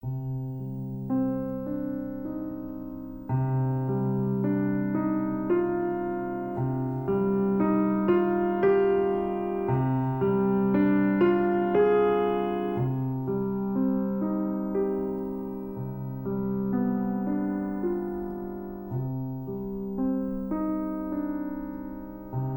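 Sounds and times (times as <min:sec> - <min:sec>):
relaxing music: 0:00.0 - 0:22.5.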